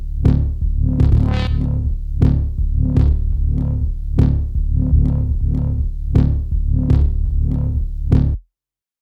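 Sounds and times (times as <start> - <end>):
dirty river bass: 0.0 - 8.4.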